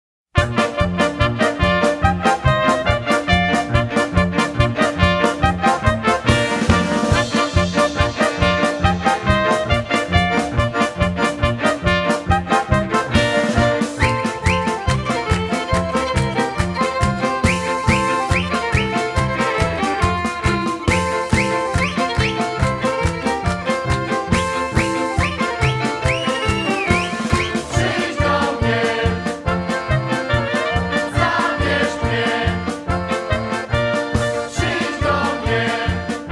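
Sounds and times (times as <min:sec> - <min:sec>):
polka music: 0:00.3 - 0:36.3.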